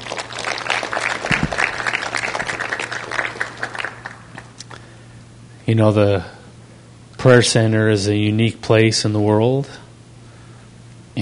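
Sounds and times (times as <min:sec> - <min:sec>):
crowd applauding: 0:00.0 - 0:04.6
low electrical hum: 0:00.0 - 0:11.1
speech: 0:05.7 - 0:06.4, 0:07.2 - 0:09.8.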